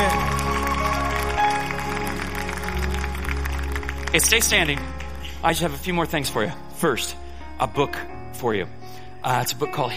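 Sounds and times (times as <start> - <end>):
audience clapping hands: 0.0 - 6.0
speech: 4.2 - 9.9.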